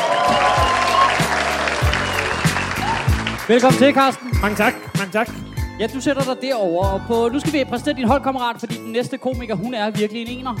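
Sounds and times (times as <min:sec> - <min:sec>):
studio audience applause for a comedian on a Danish comedy show: 0:00.0 - 0:05.5
bright music with punchy low notes: 0:00.0 - 0:10.5
speech: 0:03.5 - 0:10.5.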